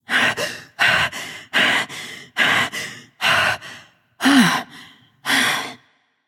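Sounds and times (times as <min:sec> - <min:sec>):
light breathing: 0:00.1 - 0:05.8.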